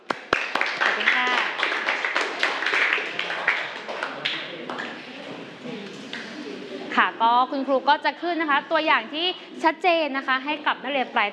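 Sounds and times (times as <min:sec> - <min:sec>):
students clapping: 0:00.0 - 0:05.0
speech: 0:07.0 - 0:11.3.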